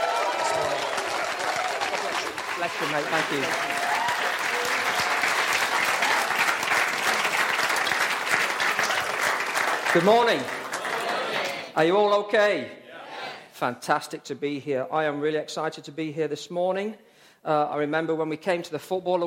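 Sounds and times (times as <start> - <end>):
audience applause: 0.0 - 11.8
speech: 2.6 - 4.0, 10.0 - 10.6, 11.8 - 12.8, 13.6 - 19.2.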